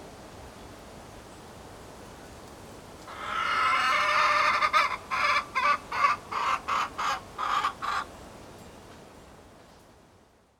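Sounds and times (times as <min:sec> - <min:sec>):
hen cackle: 0:03.1 - 0:08.1.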